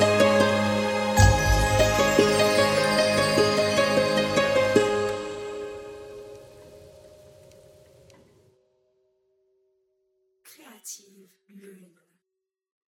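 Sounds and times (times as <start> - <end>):
harp: 0.0 - 6.6
orchestra playing: 0.2 - 6.0.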